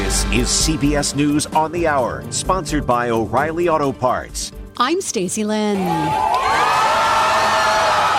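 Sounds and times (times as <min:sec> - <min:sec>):
speech: 0:00.1 - 0:06.8
crowd cheering in Tel Aviv as hostages are released: 0:05.7 - 0:08.1
whoops and shouts: 0:05.8 - 0:08.1.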